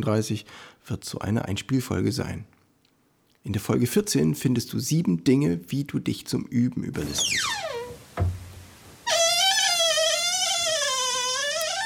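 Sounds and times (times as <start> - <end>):
speech: 0.0 - 2.6, 3.4 - 7.6
120-year-old door creaking musically: 7.0 - 8.4, 9.0 - 11.8.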